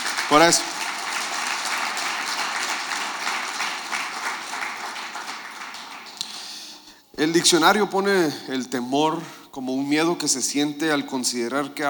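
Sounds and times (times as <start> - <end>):
audience strong applause: 0.0 - 6.7
speech: 0.3 - 0.8, 7.2 - 11.8.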